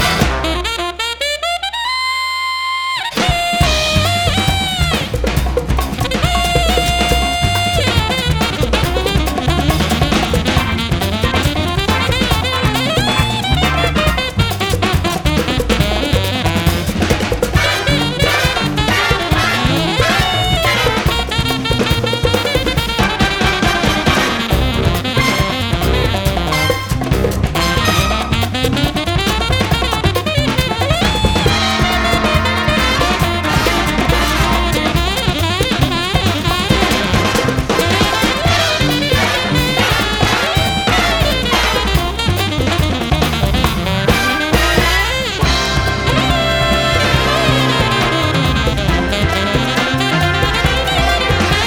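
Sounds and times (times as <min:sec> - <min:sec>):
whole solo: 0:00.0 - 0:51.6.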